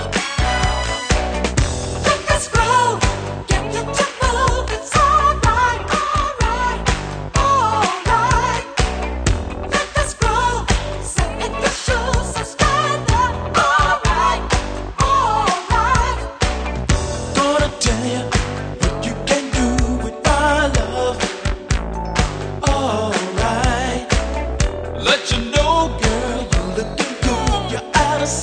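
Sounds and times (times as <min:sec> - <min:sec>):
disco music: 0:00.0 - 0:28.4.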